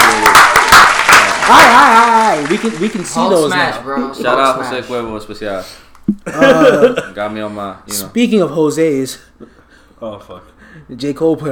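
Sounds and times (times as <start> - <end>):
audience applause: 0.0 - 3.7
speech: 1.5 - 11.5
laughter: 6.2 - 7.2.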